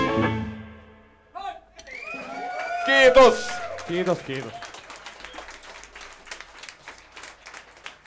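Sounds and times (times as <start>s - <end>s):
audience applause: 1.8s - 8.0s
speech: 2.9s - 4.6s.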